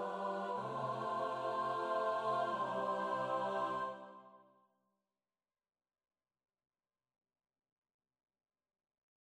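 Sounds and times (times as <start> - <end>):
choir singing: 0.0 - 4.5.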